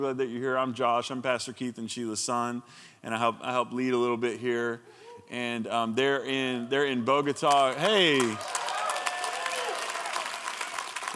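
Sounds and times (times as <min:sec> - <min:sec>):
speech: 0:00.0 - 0:08.7
audience applauding: 0:07.4 - 0:11.1.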